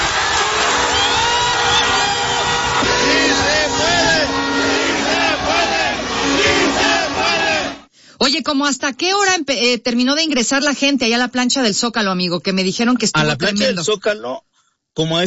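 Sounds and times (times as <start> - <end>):
thousands of people singing the anthem in the Zócalo: 0.2 - 7.9
speech: 8.4 - 15.2.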